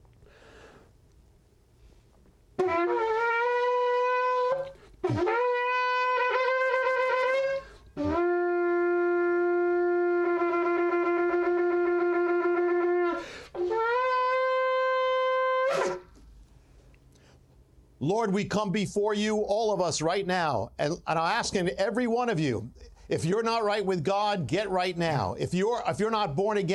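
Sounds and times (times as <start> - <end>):
shofar blasts: 2.6 - 16.2
speech: 18.1 - 26.7.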